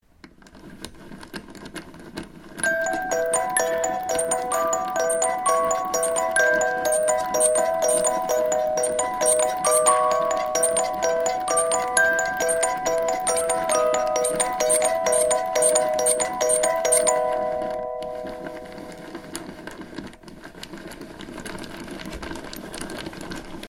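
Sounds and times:
music box with wrong notes: 2.6 - 20.3.

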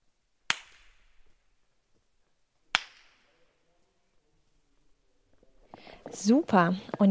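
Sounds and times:
single hand clap with long hall reverberation: 0.5 - 1.1, 2.7 - 3.3
speech: 6.2 - 7.0.

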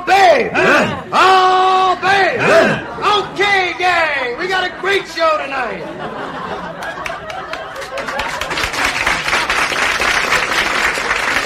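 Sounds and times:
speech: 0.4 - 2.9, 4.8 - 6.6
faint crowd murmur: 0.5 - 7.0
laughter: 0.5 - 9.5
audience applause: 6.6 - 11.4.

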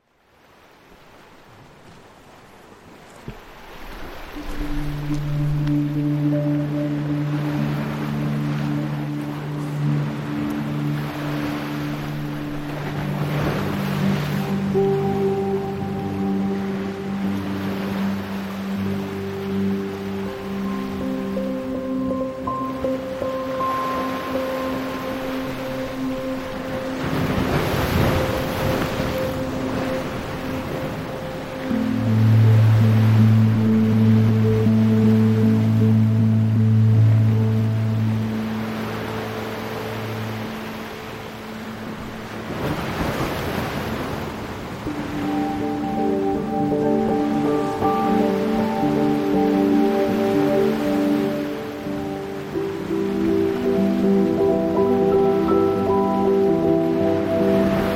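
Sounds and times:
waves breaking: 0.0 - 57.9.

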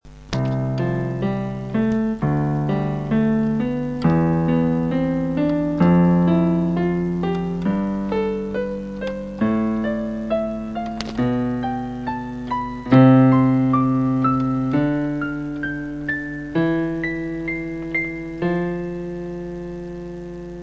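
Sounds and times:
amateur keyboard song: 0.0 - 20.6.

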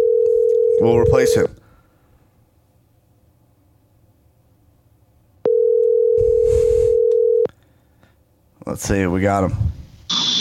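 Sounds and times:
telephone dial tone while placing call: 0.0 - 0.8, 5.5 - 7.5
speech: 0.8 - 1.6, 8.7 - 9.8.

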